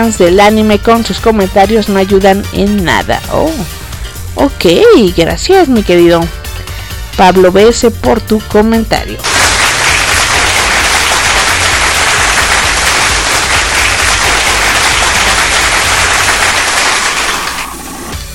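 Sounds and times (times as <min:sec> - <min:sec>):
speech: 0:00.0 - 0:03.8, 0:04.4 - 0:06.5, 0:07.2 - 0:09.4
applause sound effect: 0:09.2 - 0:18.2.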